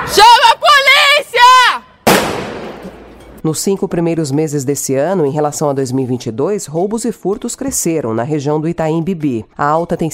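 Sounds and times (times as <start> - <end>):
shouted vocal cries: 0.0 - 1.8
gunshot from a video: 2.0 - 3.2
speech: 3.4 - 10.1.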